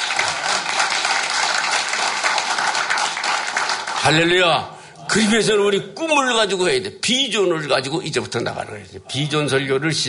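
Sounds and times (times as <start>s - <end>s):
audience applause: 0.0s - 4.4s
speech: 4.1s - 10.0s.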